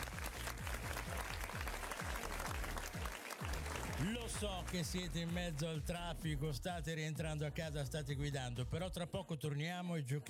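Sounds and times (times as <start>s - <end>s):
applause: 0.0s - 6.1s
speech: 4.0s - 10.2s.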